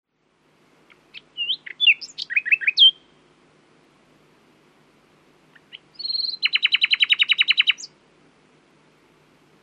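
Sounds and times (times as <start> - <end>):
common nightingale Luscinia megarhynchos singing: 0.8 - 3.3, 5.5 - 8.0.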